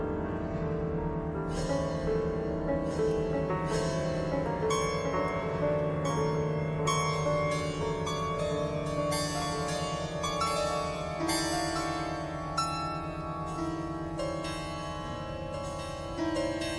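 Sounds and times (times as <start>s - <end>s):
piano thread noise: 0.0s - 16.7s.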